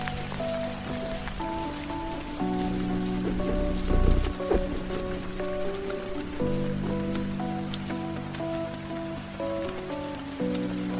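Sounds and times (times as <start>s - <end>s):
rain pattering: 0.0s - 10.9s
heavier low rumble: 1.0s - 7.5s.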